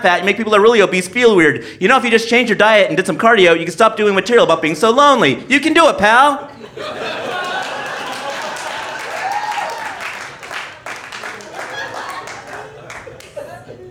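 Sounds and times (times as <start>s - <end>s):
laughter: 0.0s - 0.9s, 6.4s - 13.8s
speech: 0.0s - 7.0s
audience applause: 7.0s - 13.6s.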